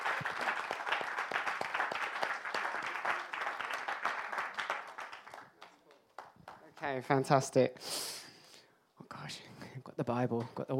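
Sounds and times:
audience applause at a church gathering: 0.0s - 7.0s
speech: 6.9s - 8.2s, 10.1s - 10.7s.

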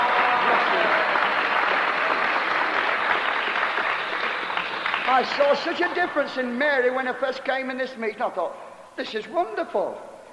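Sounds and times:
audience clapping: 0.0s - 7.0s
speech: 5.1s - 10.1s.

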